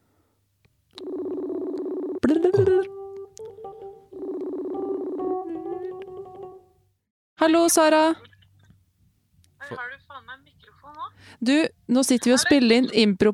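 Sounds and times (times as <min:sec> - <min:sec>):
phone call ringing tone: 0:01.0 - 0:06.6
speech: 0:07.4 - 0:08.3, 0:11.4 - 0:13.3.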